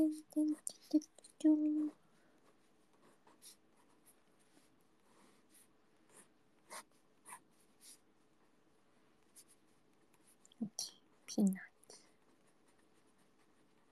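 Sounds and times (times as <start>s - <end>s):
speech: 0.0s - 2.0s, 10.6s - 11.7s
pen drawing on paper: 2.5s - 8.0s, 12.1s - 13.9s.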